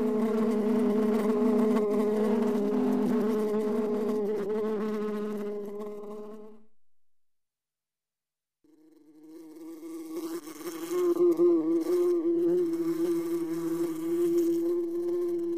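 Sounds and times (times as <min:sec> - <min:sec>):
two bees buzzing: 0:00.0 - 0:06.1, 0:09.4 - 0:15.5.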